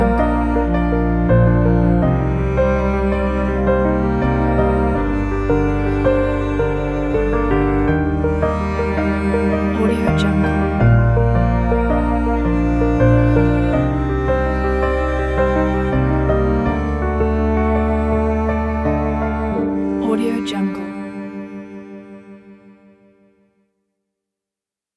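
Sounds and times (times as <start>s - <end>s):
sad inspiring piano music: 0.0s - 23.3s.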